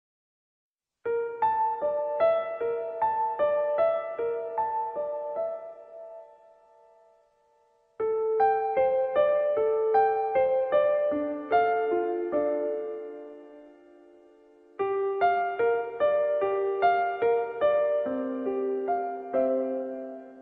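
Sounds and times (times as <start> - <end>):
piano: 0.9 - 20.3.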